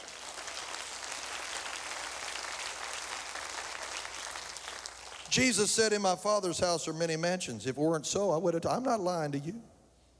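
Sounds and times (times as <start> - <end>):
audience clapping: 0.0 - 5.7
speech: 5.3 - 9.7.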